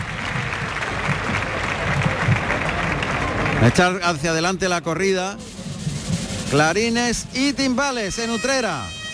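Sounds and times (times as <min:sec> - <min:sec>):
large outdoor bullring crowd applauding: 0:00.0 - 0:04.5
speech: 0:03.6 - 0:05.5, 0:06.5 - 0:09.0.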